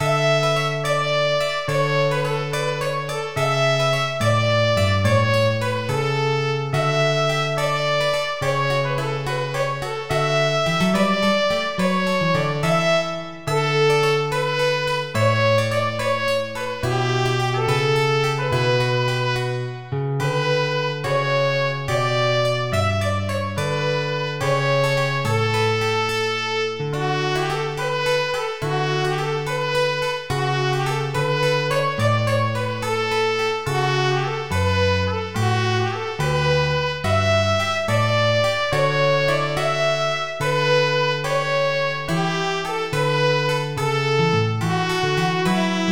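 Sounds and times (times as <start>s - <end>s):
tune: 0.0s - 45.9s.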